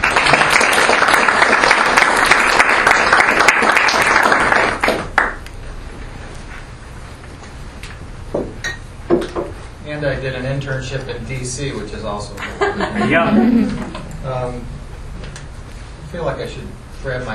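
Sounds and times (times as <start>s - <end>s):
audience applause welcoming a guest speaker at a morning watershed event: 0.0s - 5.4s
speech: 10.1s - 14.8s, 16.1s - 17.3s
laughter: 12.4s - 14.1s.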